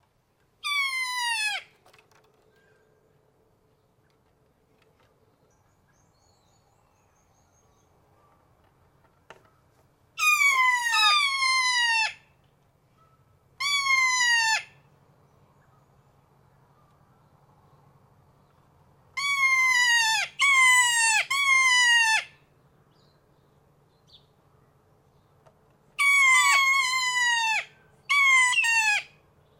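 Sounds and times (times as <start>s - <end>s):
kea calling: 0.6s - 1.7s, 10.2s - 12.2s, 13.6s - 14.7s, 19.2s - 22.3s, 26.0s - 29.1s.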